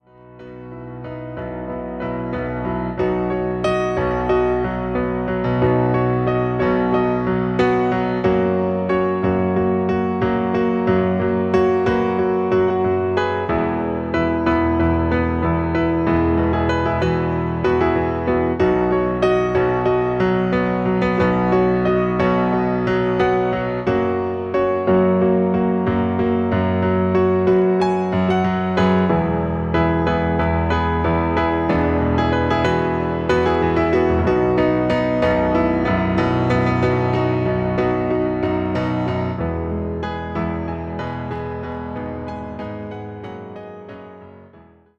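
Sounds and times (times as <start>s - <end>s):
professional piano soundtrack music: 0.0s - 44.9s.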